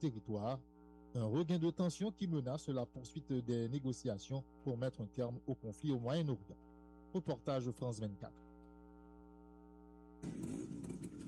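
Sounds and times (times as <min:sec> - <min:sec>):
speech: 0:00.0 - 0:08.4, 0:10.2 - 0:10.8
thousands of Vespa scooters parading through the historic centre of Rome: 0:10.2 - 0:11.2.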